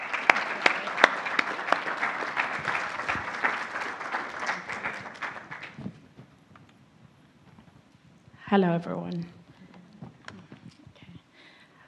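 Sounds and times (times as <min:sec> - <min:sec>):
warm round of applause: 0:00.0 - 0:06.1
speech: 0:08.5 - 0:09.4.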